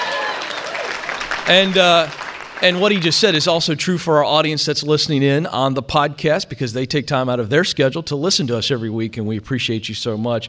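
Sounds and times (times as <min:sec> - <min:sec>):
audience applause: 0:00.0 - 0:03.5
speech: 0:01.5 - 0:10.4.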